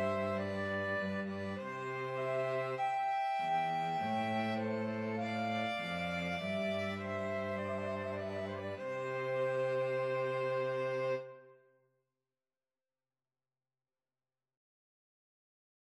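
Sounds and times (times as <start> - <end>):
cello: 0.0 - 11.6
flute: 0.0 - 11.6
violin: 0.0 - 11.6.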